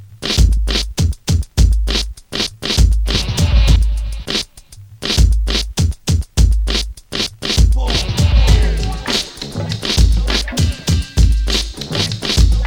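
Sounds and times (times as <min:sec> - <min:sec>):
instrumental noise music: 0:00.0 - 0:12.6.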